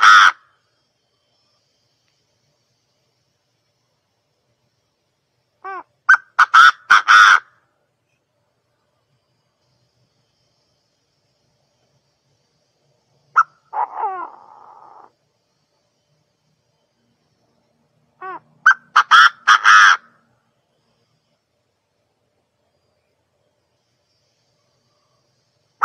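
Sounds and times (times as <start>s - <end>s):
partridge calling: 0.0s - 0.4s, 5.6s - 7.5s, 13.3s - 15.1s, 18.2s - 20.1s.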